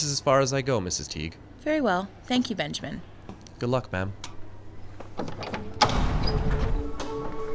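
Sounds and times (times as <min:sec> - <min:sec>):
speech: 0:00.0 - 0:04.3
gate opening with a clunk and grinding: 0:05.2 - 0:07.4.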